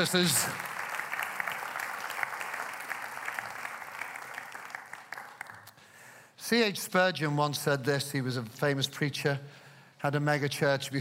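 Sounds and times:
speech: 0:00.0 - 0:00.7, 0:06.5 - 0:10.9
audience applause: 0:00.0 - 0:05.8.

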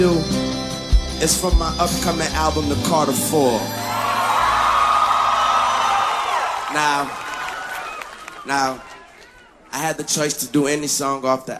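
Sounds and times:
speech: 0:01.2 - 0:04.0, 0:06.8 - 0:07.2, 0:08.4 - 0:08.9, 0:09.7 - 0:11.5
live concert crowd cheering: 0:02.8 - 0:11.2
high whoop: 0:03.7 - 0:09.5.

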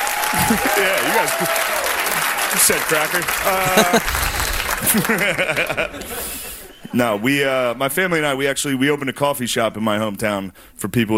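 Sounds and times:
voices whooping and laughing: 0:00.0 - 0:02.2, 0:03.3 - 0:06.9
audience clapping: 0:00.0 - 0:07.2
speech: 0:00.4 - 0:11.1.

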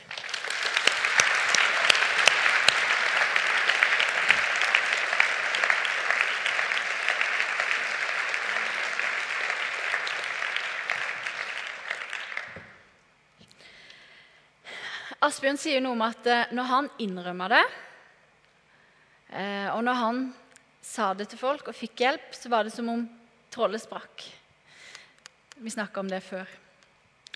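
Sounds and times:
audience applause: 0:00.0 - 0:12.9
speech: 0:15.3 - 0:17.8, 0:19.4 - 0:24.3, 0:25.6 - 0:26.6.

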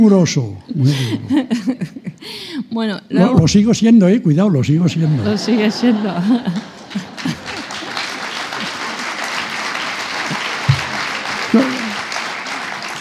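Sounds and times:
speech: 0:00.0 - 0:07.3
laughter: 0:00.7 - 0:02.2, 0:05.0 - 0:12.9
audience applause: 0:05.4 - 0:12.9.

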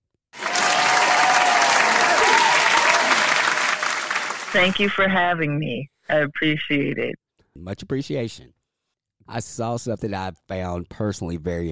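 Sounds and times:
crowd applauding to welcome a writer as a guest: 0:00.4 - 0:05.1
speech: 0:04.5 - 0:08.6, 0:09.3 - 0:11.7.

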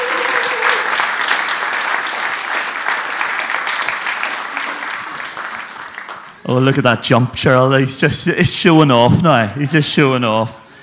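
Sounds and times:
crowd applause: 0:00.0 - 0:06.4
speech: 0:06.5 - 0:10.6.

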